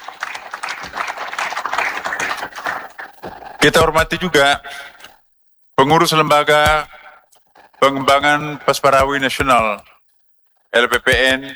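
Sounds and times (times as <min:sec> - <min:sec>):
applause: 0:00.0 - 0:04.1
speech: 0:03.6 - 0:04.9, 0:05.8 - 0:06.9, 0:07.8 - 0:09.9, 0:10.7 - 0:11.5.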